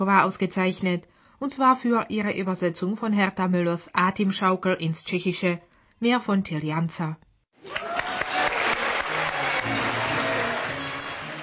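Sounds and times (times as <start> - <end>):
speech: 0.0 - 8.0
audience applause: 7.6 - 11.4.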